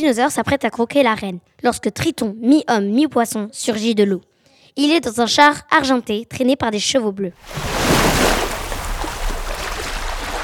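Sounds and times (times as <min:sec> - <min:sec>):
speech: 0:00.0 - 0:08.4
churning wash of surf and spray: 0:07.4 - 0:10.4
large ocean wave crashing: 0:07.4 - 0:10.4.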